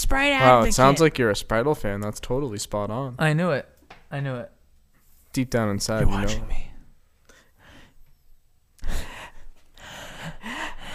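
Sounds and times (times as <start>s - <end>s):
speech: 0.1s - 4.6s, 5.3s - 6.7s
breathing into microphones: 7.3s - 8.1s, 8.8s - 10.9s.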